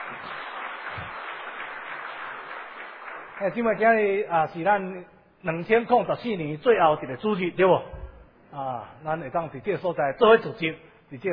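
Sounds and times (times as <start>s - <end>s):
crowd applauding: 0.0s - 3.8s
speech: 3.4s - 11.3s.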